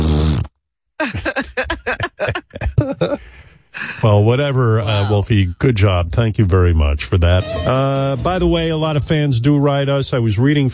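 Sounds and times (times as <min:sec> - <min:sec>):
person blowing nose: 0:00.0 - 0:00.5
laughter: 0:01.0 - 0:05.3
speech: 0:04.0 - 0:10.7.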